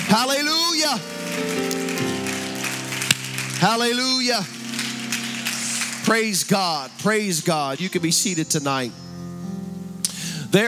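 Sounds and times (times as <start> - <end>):
people clapping hands: 0.0 - 7.8
speech: 0.1 - 1.6, 3.6 - 4.6, 6.1 - 9.1.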